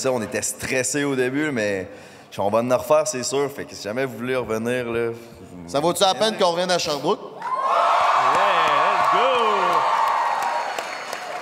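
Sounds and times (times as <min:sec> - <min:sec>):
speech: 0:00.0 - 0:07.8
whoops: 0:07.4 - 0:11.2
crowd applauding and cheering: 0:07.4 - 0:11.4.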